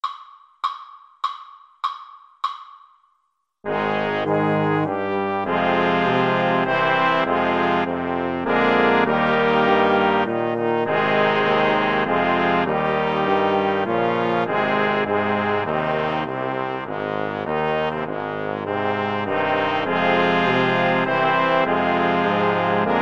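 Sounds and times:
saxophone playing an anthem: 0:03.7 - 0:22.9.

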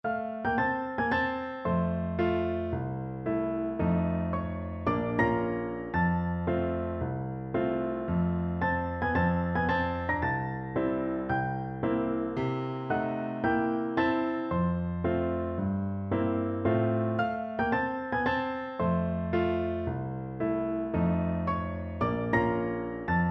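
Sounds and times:
piano duet: 0:00.0 - 0:23.2.

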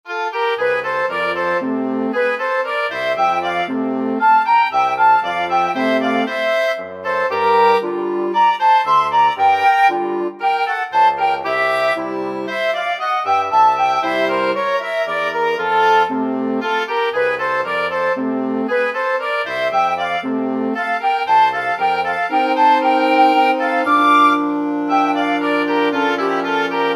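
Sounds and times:
wind quintet: 0:00.1 - 0:26.9.

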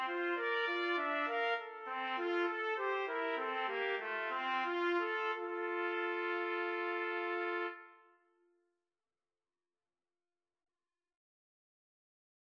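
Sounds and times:
trumpet trio playing karaoke accompaniment: 0:00.0 - 0:08.0.

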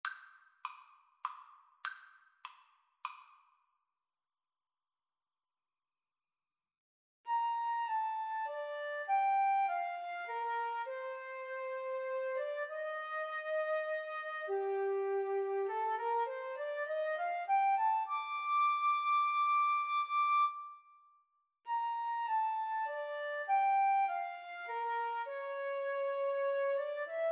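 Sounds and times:
flute duet: 0:07.3 - 0:21.0, 0:21.7 - 0:27.3.

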